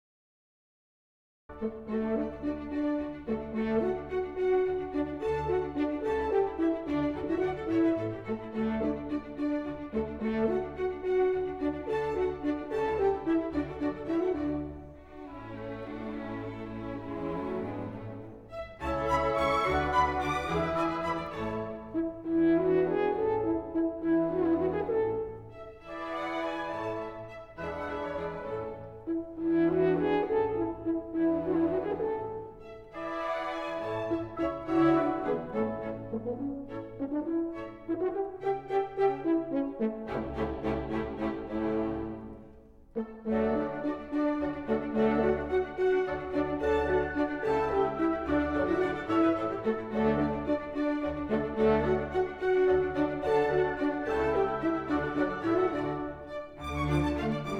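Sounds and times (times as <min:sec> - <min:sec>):
horn with orchestra in a concerto: 0:01.5 - 0:57.5.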